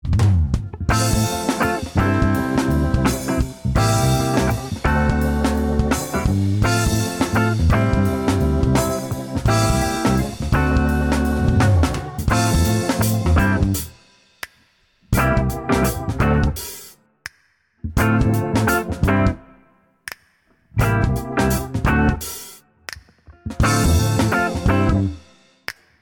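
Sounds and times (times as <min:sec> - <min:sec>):
instrumental lieder: 0:00.2 - 0:14.4, 0:15.2 - 0:17.0, 0:18.0 - 0:19.5, 0:20.8 - 0:25.5.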